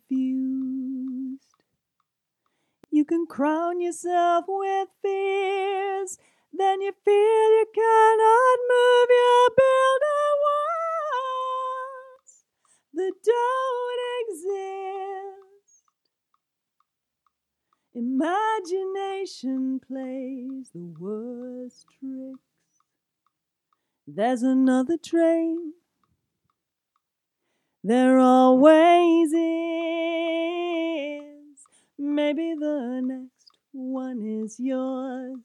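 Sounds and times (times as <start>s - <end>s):
lead vocal: 0.0s - 1.6s, 2.9s - 15.6s, 18.0s - 22.4s, 24.1s - 25.8s, 27.8s - 35.4s.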